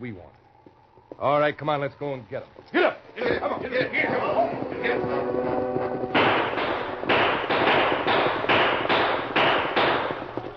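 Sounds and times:
speech: 0:00.0 - 0:00.4, 0:01.2 - 0:05.6
gunshots from outlaws' guns: 0:06.1 - 0:10.4.

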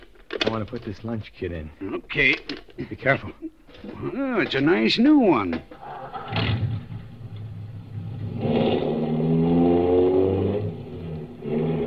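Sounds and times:
speech: 0:00.5 - 0:06.6
car engine driving on a road to a plant: 0:05.7 - 0:11.8.

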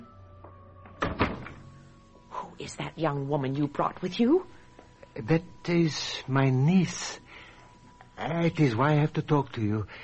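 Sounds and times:
door opening: 0:00.8 - 0:01.8
speech: 0:02.6 - 0:04.6, 0:05.2 - 0:07.2, 0:08.2 - 0:10.0.

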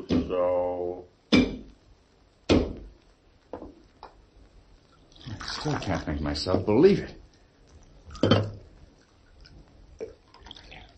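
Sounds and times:
speech: 0:00.0 - 0:01.1, 0:05.6 - 0:07.2
coffee being poured into a cup: 0:04.9 - 0:06.2, 0:07.7 - 0:10.9.

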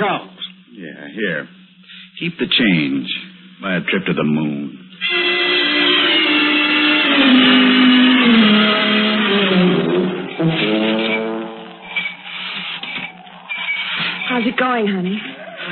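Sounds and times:
speech: 0:00.0 - 0:00.4, 0:01.0 - 0:01.6, 0:02.2 - 0:05.2, 0:14.5 - 0:15.7
car horn honking: 0:05.0 - 0:13.0.

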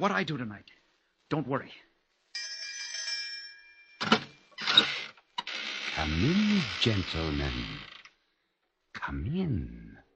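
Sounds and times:
speech: 0:00.0 - 0:01.9, 0:04.8 - 0:05.0, 0:06.0 - 0:07.9, 0:09.0 - 0:10.0
doorbell ringing: 0:02.4 - 0:04.5.

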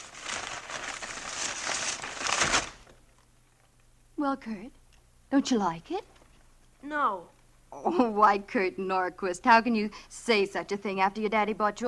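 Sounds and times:
wrapping paper crinkling and tearing as a birthday present is unwrapped: 0:00.0 - 0:03.0
speech: 0:04.2 - 0:06.2, 0:06.8 - 0:11.8.

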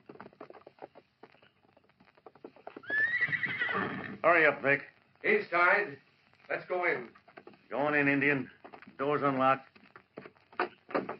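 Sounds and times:
horse hooves clopping: 0:00.0 - 0:11.1
horse whinnying: 0:02.5 - 0:04.3
speech: 0:03.8 - 0:09.7.

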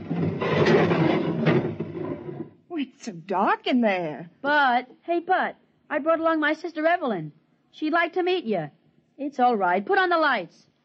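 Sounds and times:
door with a sonic lock sliding open: 0:00.0 - 0:02.6
speech: 0:02.8 - 0:10.7.

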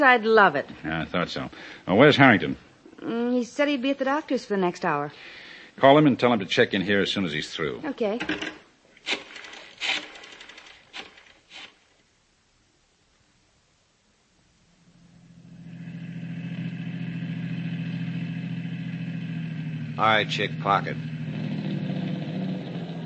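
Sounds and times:
speech: 0:00.0 - 0:10.0, 0:20.0 - 0:21.2
car engine idling: 0:14.8 - 0:23.0.

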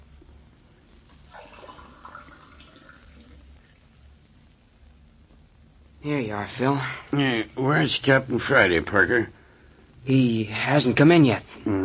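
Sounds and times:
low hum: 0:00.0 - 0:11.8
tap water filling a glass: 0:01.1 - 0:03.5
speech: 0:06.0 - 0:09.4, 0:10.0 - 0:11.8.

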